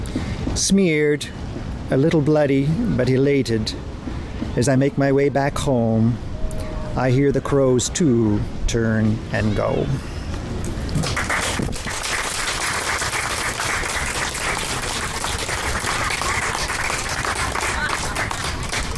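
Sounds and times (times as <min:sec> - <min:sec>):
speech: 0:00.6 - 0:03.9, 0:04.6 - 0:06.3, 0:07.0 - 0:10.1
audience applause: 0:10.8 - 0:18.9.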